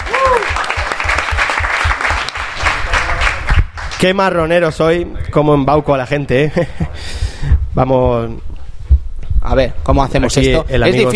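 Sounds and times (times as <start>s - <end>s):
audience applause: 0.0s - 4.0s
speech: 4.0s - 7.1s, 7.8s - 8.5s, 9.4s - 11.1s.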